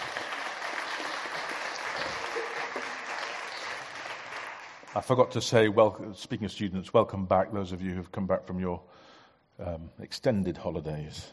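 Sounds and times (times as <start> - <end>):
round of applause: 0.0 - 5.4
speech: 5.0 - 11.3.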